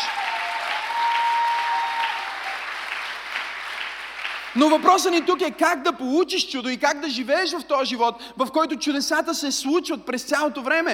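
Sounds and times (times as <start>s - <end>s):
audience applause: 0.0s - 5.4s
speech: 4.6s - 10.9s.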